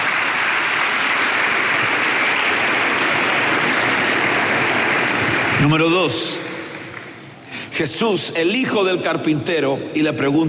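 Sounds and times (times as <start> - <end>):
audience clapping hands: 0.0 - 7.6
speech: 5.6 - 6.4, 7.8 - 10.4.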